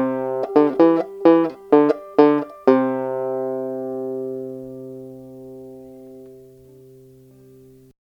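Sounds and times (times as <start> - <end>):
melody: 0.0 - 4.5.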